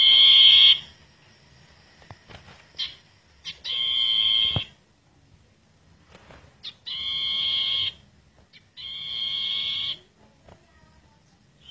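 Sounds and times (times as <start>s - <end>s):
bird song of long and slurred whistles: 0.0s - 0.9s, 2.8s - 4.7s, 6.6s - 10.0s.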